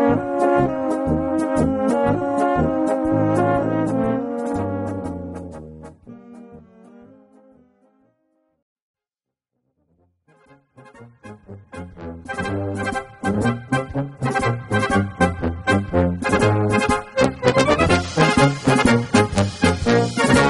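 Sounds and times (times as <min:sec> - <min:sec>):
brass band march: 0:00.0 - 0:06.4, 0:10.8 - 0:20.4.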